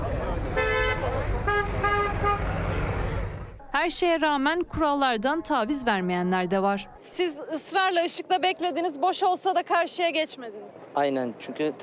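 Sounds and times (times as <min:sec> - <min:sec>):
repeated car horn honking in city traffic: 0:00.5 - 0:03.4
speech: 0:03.8 - 0:11.8.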